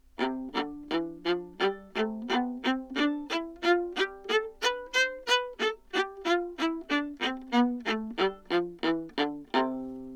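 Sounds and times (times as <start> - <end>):
modern viola playing detache in C major, anechoic: 0.2 - 10.1.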